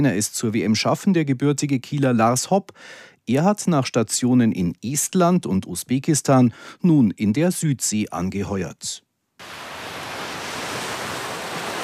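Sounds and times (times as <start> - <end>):
speech: 0.0 - 9.6
ocean waves breaking on a beach: 9.4 - 11.8.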